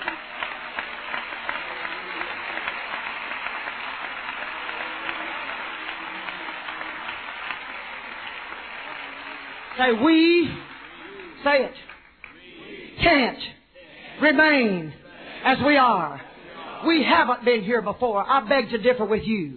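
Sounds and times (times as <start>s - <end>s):
audience clapping hands: 0.0s - 12.9s
speech: 9.8s - 10.6s, 11.4s - 11.9s, 13.1s - 13.6s, 14.2s - 19.5s.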